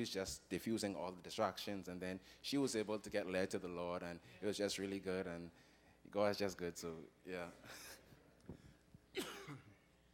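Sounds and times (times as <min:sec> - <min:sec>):
speech: 0:00.0 - 0:08.6, 0:09.2 - 0:09.6
preacher clearing throat at a pulpit: 0:09.2 - 0:09.8.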